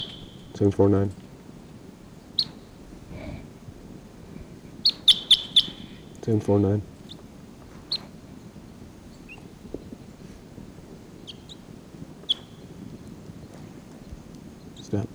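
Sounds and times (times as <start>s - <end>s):
wild birds calling: 0.0s - 15.1s
speech: 0.6s - 1.2s, 6.3s - 6.9s.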